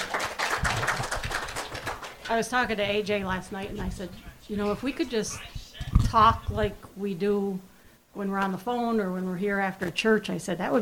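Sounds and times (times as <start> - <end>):
applause: 0.0 - 2.4
speech: 2.3 - 10.8.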